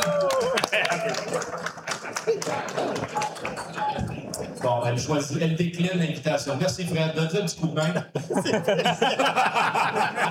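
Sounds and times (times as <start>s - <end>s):
audience applause: 0.0s - 4.8s
laughter: 0.5s - 4.4s, 7.8s - 10.3s
speech: 4.6s - 10.3s.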